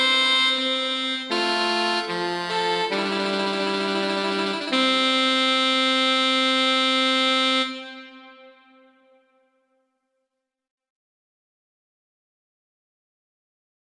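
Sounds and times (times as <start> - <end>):
larghetto piece: 0.0 - 9.0.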